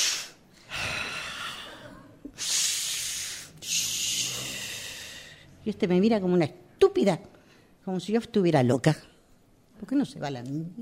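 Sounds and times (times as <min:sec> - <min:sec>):
deep breathing: 0:00.0 - 0:05.6
speech: 0:05.7 - 0:09.1, 0:09.8 - 0:10.8.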